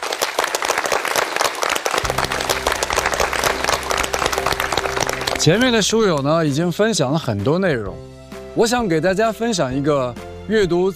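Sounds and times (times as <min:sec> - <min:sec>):
audience applause: 0:00.0 - 0:06.2
low sustained musical tone: 0:02.0 - 0:06.2
speech: 0:05.4 - 0:10.9.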